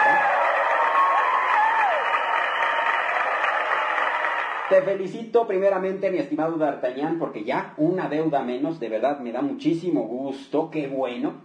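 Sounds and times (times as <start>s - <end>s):
audience applause: 0.0s - 4.9s
faint crowd cheering: 0.0s - 4.9s
speech: 4.7s - 11.4s.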